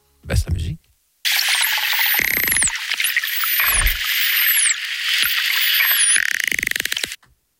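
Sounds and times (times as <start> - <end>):
dolphin rapid clicking: 1.3 - 7.2
dolphin whistles: 1.3 - 7.2.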